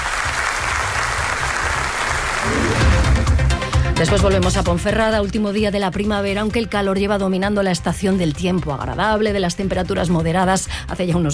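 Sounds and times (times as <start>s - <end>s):
crowd applause welcoming a woman home: 0.0s - 3.5s
speech: 4.0s - 11.3s.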